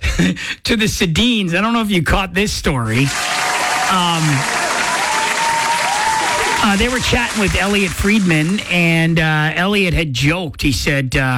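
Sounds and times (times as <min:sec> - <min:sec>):
speech: 0:00.2 - 0:03.3, 0:03.9 - 0:04.6, 0:06.6 - 0:11.3
applause: 0:03.1 - 0:09.2.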